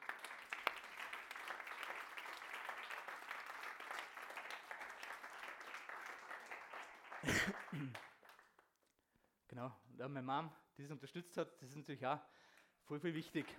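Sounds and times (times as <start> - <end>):
audience applause: 0.0 - 8.6
speech: 7.2 - 8.1, 9.5 - 13.5.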